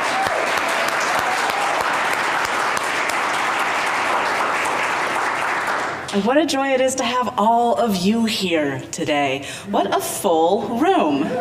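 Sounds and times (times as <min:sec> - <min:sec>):
audience applause: 0:00.0 - 0:06.2
speech: 0:06.1 - 0:11.3.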